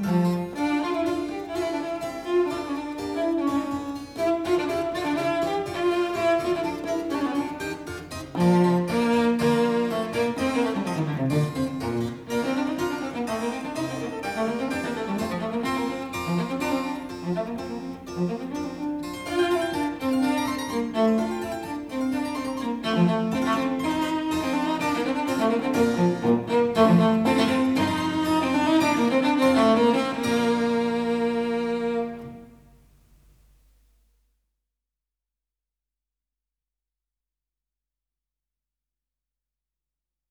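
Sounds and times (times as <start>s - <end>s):
fast music piece: 0.1s - 32.3s.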